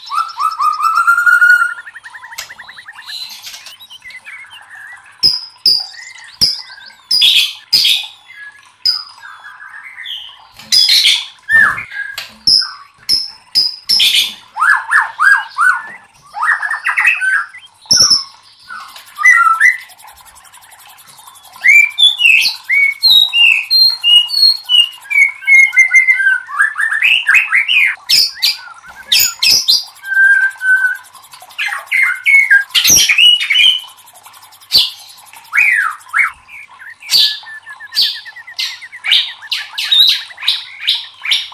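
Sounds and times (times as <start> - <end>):
white-rumped shama singing: 0.0 - 9.6, 10.7 - 20.0, 21.3 - 33.9, 34.7 - 41.5.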